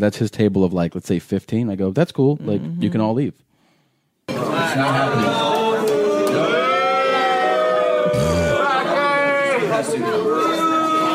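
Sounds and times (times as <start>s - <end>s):
speech: 0.0s - 3.5s, 4.3s - 5.6s, 9.8s - 10.5s
crowd booing: 4.3s - 11.1s.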